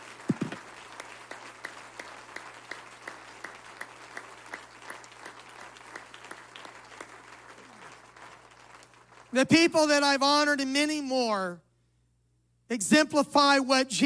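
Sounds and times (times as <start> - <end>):
crowd applause: 0.0 - 10.2
speech: 9.3 - 11.6, 12.7 - 14.0.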